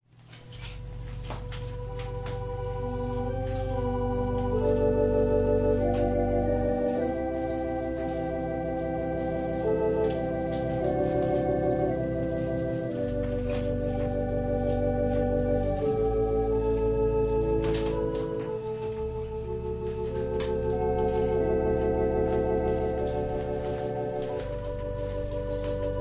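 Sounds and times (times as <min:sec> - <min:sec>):
organ prelude: 0:00.2 - 0:25.9.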